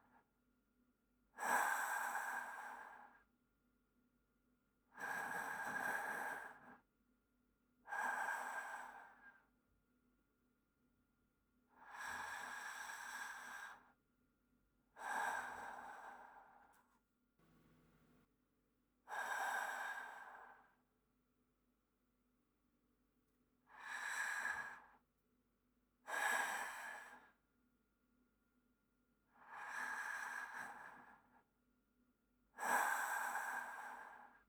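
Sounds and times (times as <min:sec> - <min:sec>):
person breathing in sleep: 0:01.4 - 0:03.2, 0:05.0 - 0:06.8, 0:08.0 - 0:09.4, 0:11.8 - 0:14.0, 0:15.0 - 0:16.8, 0:19.1 - 0:20.8, 0:23.7 - 0:25.0, 0:26.1 - 0:27.4, 0:29.4 - 0:31.4, 0:32.6 - 0:34.4.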